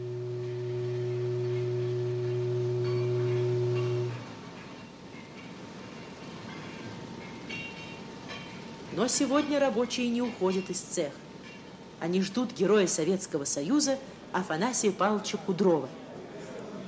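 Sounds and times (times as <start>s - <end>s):
long factory whistle: 0.0s - 4.4s
speech: 9.0s - 11.3s, 12.0s - 16.0s.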